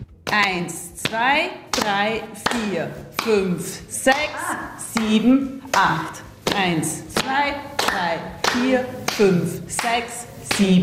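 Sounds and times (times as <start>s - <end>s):
partners clapping hands in a hand-clapping game: 0.3s - 3.4s, 4.9s - 10.8s
speech: 0.3s - 10.8s.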